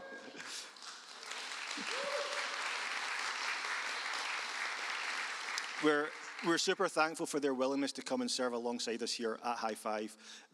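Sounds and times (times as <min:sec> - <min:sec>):
audience applause: 0:00.0 - 0:07.0
speech: 0:05.8 - 0:10.5.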